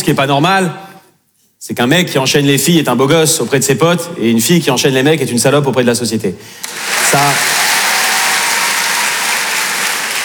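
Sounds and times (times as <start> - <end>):
speech: 0.1 - 0.8, 1.6 - 7.6
loud steady applause from an audience: 6.6 - 10.2.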